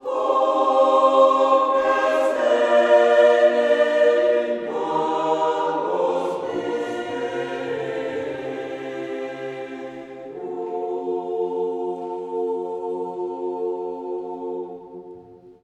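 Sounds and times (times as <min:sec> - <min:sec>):
choir singing in Latin: 0:00.0 - 0:15.6.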